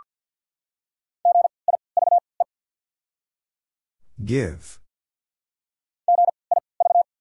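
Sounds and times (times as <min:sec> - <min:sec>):
Morse code beeps spelling a word: 0:01.3 - 0:02.2, 0:06.1 - 0:07.1
speech: 0:04.2 - 0:04.8.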